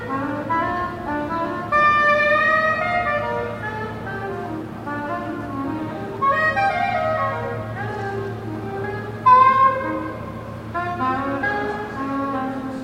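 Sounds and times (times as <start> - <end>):
busker playing soprano saxophone in Melbourne: 0.0 - 12.8.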